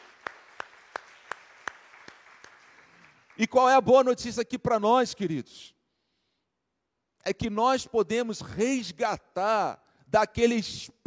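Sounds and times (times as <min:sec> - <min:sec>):
audience applause: 0:00.0 - 0:04.2
speech: 0:03.4 - 0:05.8, 0:07.2 - 0:11.0.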